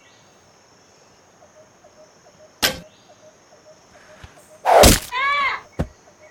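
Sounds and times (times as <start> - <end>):
arrow shot during target practice: 4.7 - 5.2.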